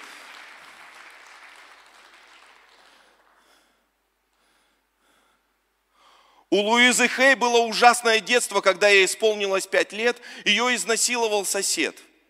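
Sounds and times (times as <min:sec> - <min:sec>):
applause: 0:00.0 - 0:03.8
speech: 0:06.5 - 0:12.1.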